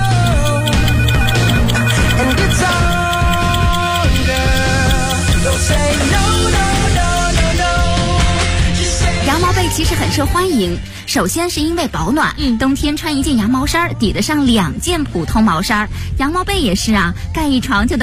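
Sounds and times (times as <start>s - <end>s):
upbeat music interlude in a radio shopping programme: 0.0s - 10.8s
speech: 9.8s - 18.0s.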